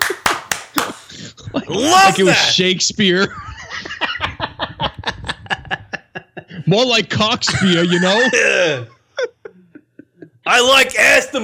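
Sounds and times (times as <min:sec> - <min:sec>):
sharp hand claps: 0:00.0 - 0:01.1
laughter: 0:00.0 - 0:10.8
speech: 0:01.6 - 0:03.5, 0:06.7 - 0:09.0, 0:10.5 - 0:11.4.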